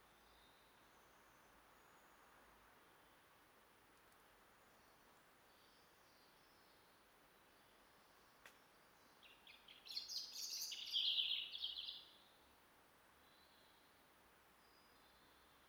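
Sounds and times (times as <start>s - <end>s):
European robin singing, Erithacus rubecula: 9.0s - 12.2s.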